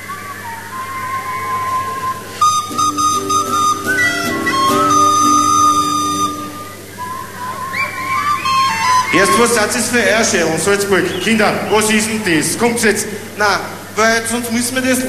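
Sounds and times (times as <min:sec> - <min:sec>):
audience whistling a tune together: 0:00.0 - 0:10.0, 0:10.8 - 0:12.1
lower, fuller whistling tone: 0:00.0 - 0:10.1
speech: 0:09.2 - 0:15.0.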